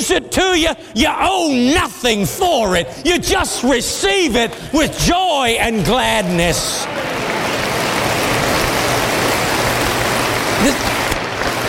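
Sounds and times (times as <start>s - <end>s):
speech: 0.0s - 7.3s, 10.6s - 10.9s
weak audience clapping: 6.8s - 11.6s.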